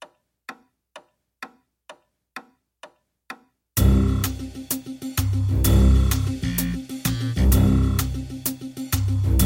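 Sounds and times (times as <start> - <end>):
background music: 3.8 - 9.4.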